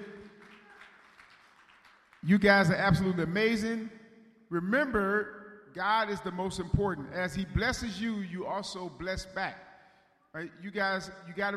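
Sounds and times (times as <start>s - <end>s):
crowd hand clapping: 0.0s - 2.6s
speech: 2.2s - 9.6s, 10.3s - 11.5s.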